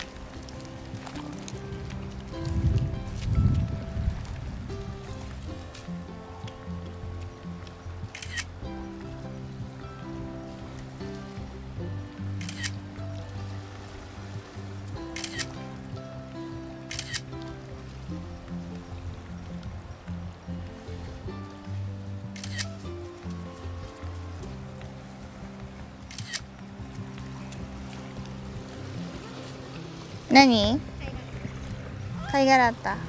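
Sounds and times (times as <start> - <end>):
steady low rumble of outdoor noise: 0.0 - 33.0
camera shutter clicks: 8.2 - 8.5, 12.4 - 12.8, 15.2 - 15.5, 16.9 - 17.2, 22.4 - 22.7, 26.1 - 26.4
speech: 30.4 - 30.9, 32.4 - 33.0.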